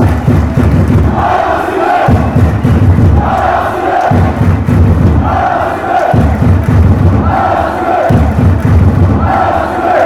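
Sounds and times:
crowd chanting: 0.0 - 10.0.

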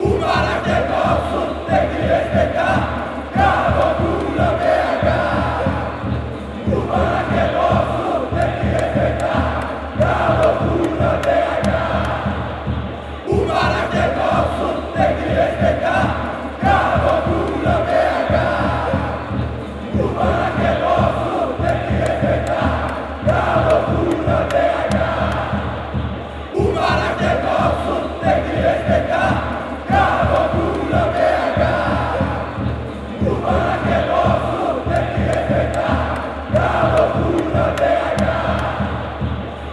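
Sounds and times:
people chanting: 0.0 - 39.7.

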